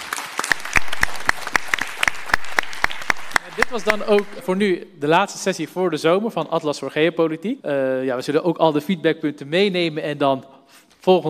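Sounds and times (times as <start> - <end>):
audience applause: 0.0 - 4.7
speech: 3.6 - 11.2.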